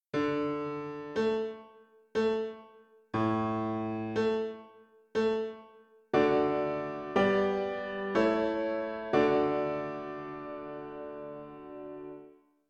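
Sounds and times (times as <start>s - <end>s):
piano: 0.1s - 12.4s.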